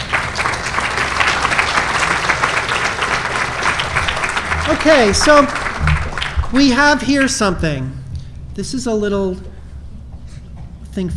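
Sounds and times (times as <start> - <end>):
crowd applauding: 0.0 - 7.5
speech: 4.7 - 5.9, 6.5 - 8.0, 8.6 - 9.5, 11.0 - 11.1.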